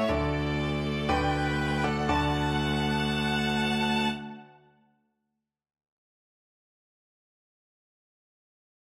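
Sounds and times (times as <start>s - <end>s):
piano quartet playing wedding march: 0.0s - 4.6s.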